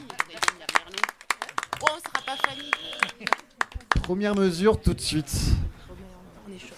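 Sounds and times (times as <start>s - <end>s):
audience applauding: 0.0s - 4.5s
speech: 4.1s - 5.6s.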